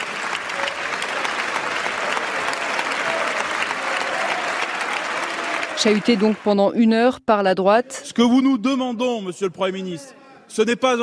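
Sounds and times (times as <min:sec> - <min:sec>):
standing ovation applause in parliament: 0:00.0 - 0:07.1
speech: 0:05.8 - 0:11.0.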